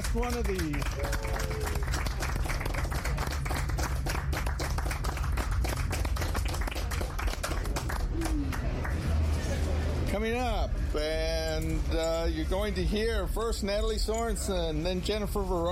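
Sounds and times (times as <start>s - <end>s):
audience applause at a live event: 0.0s - 9.4s
speech: 0.1s - 2.0s, 10.2s - 15.7s.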